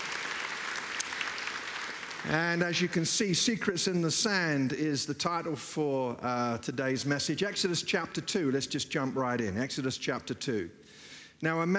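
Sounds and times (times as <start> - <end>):
audience applause: 0.0 - 3.0
speech: 2.2 - 11.7.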